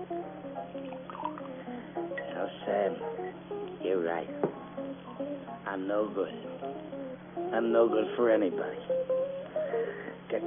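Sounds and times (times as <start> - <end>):
drink pouring into a glass: 0.8 - 1.6
speech: 2.4 - 10.4.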